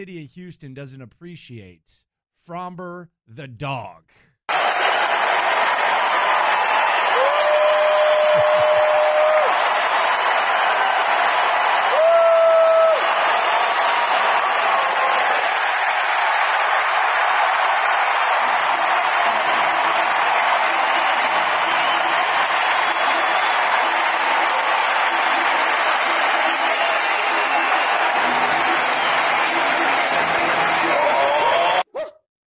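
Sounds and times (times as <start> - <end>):
speech: 0.0 - 4.6
ballpark crowd roaring and cheering on a final pitch: 4.5 - 31.9.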